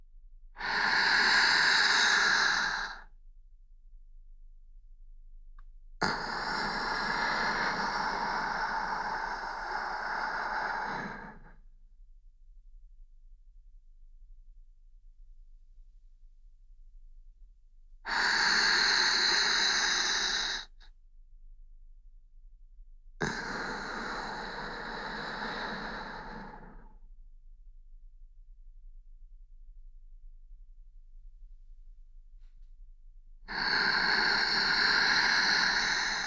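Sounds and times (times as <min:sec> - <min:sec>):
slow deep breathing: 0:00.6 - 0:03.2, 0:06.0 - 0:11.7, 0:18.1 - 0:20.9, 0:23.2 - 0:27.0, 0:33.5 - 0:36.2.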